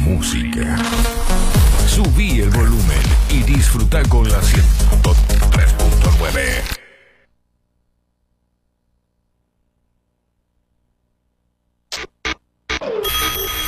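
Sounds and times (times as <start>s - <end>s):
speech: 0.1s - 6.8s
alarm clock ringing: 13.0s - 13.6s.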